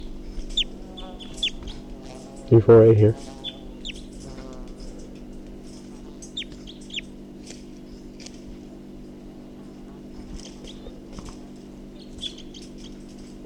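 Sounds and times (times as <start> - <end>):
bird giving short high chirping calls: 0.0 - 1.9, 2.8 - 5.0, 6.2 - 7.1, 10.4 - 11.0, 12.0 - 13.0
low mechanical hum: 0.0 - 13.4
speech: 2.5 - 3.4.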